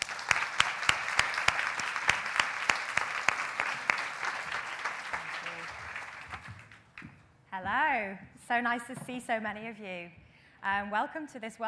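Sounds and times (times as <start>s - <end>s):
audience applause: 0.0s - 7.0s
speech: 7.6s - 11.6s.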